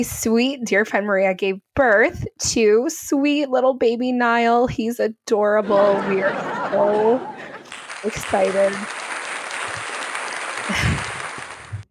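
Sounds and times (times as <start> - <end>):
speech: 0.0 - 7.4, 8.0 - 9.0
laughter: 5.6 - 11.7
hand clapping: 7.5 - 11.8.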